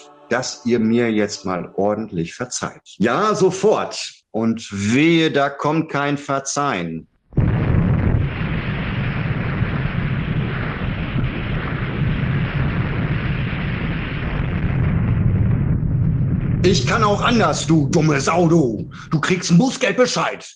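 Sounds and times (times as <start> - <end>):
speech: 0.3 - 7.1, 16.6 - 20.5
fireworks exploding: 7.4 - 19.2.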